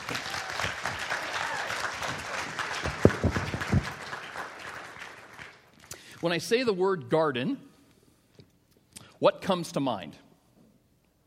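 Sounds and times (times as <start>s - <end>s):
audience clapping: 0.0s - 6.4s
speech: 6.2s - 7.7s, 9.2s - 10.2s.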